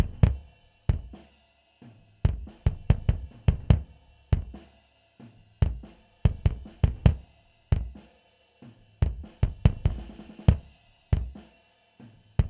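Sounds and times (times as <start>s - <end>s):
bass drum: 0.0s - 1.2s, 2.3s - 4.6s, 5.6s - 8.0s, 9.0s - 11.4s.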